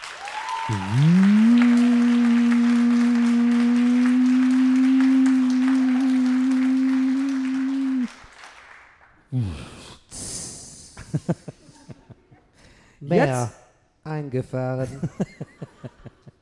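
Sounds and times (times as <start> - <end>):
audience applause: 0.0 - 9.0
speech: 0.7 - 1.4, 11.3 - 11.5, 13.1 - 13.6, 14.3 - 15.5
loud long droning tone: 0.7 - 8.1.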